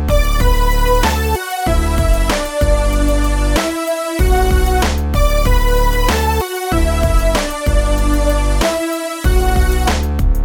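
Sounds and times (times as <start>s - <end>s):
simple major-key rhythm: 0.1s - 10.3s.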